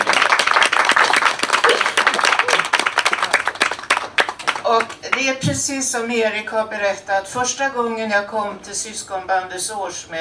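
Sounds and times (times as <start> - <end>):
audience applause: 0.0 - 5.0
speech: 4.7 - 10.1.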